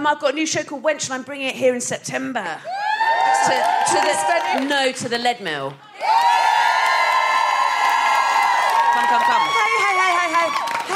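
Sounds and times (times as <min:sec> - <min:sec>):
speech: 0:00.0 - 0:06.3
audience cheering loudly: 0:02.7 - 0:04.9, 0:06.0 - 0:10.9.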